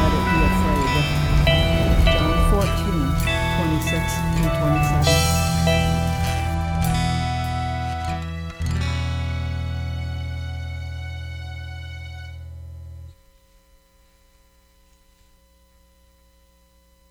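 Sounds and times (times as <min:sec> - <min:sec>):
lullaby music: 0:00.0 - 0:11.3.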